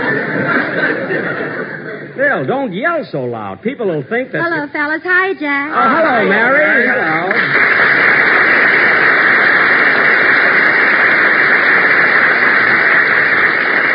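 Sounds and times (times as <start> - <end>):
laughter: 0.0 - 2.2
speech: 2.2 - 8.2
studio audience applause: 6.5 - 13.9.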